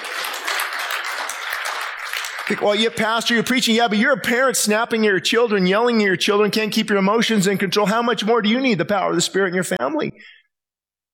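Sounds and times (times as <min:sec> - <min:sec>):
audience clapping: 0:00.0 - 0:04.4
speech: 0:02.5 - 0:10.4.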